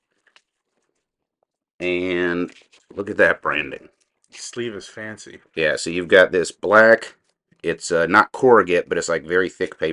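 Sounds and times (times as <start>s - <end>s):
clear plastic bag being taken off: 0.0s - 1.6s, 2.3s - 4.9s
speech: 1.8s - 9.9s.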